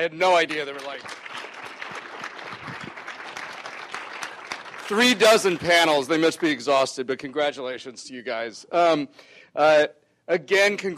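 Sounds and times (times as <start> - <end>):
speech: 0.0 - 1.2, 4.9 - 10.9
audience applause at a festival panel event: 0.4 - 6.6.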